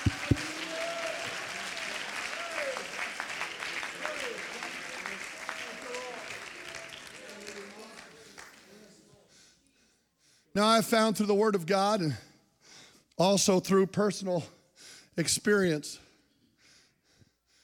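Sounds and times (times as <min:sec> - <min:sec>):
audience clapping hands: 0:00.0 - 0:08.9
speech: 0:10.6 - 0:12.3, 0:13.2 - 0:14.6, 0:15.2 - 0:16.0.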